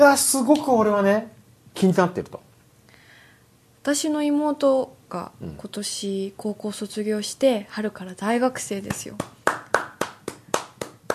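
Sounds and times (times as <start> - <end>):
speech: 0.0 - 2.5, 3.8 - 9.4
applause: 8.9 - 11.1.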